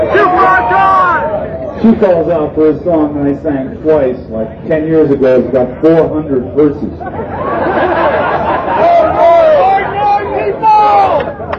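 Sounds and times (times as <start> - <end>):
crowd shouting and chattering: 0.0 - 11.5
speech: 1.8 - 7.4
people laughing: 6.8 - 10.0.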